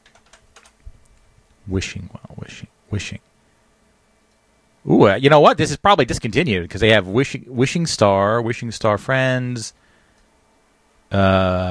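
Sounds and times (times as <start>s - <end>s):
typing a search on a computer keyboard: 0.0s - 0.8s
speech: 1.7s - 3.3s, 5.0s - 9.8s, 11.1s - 11.6s.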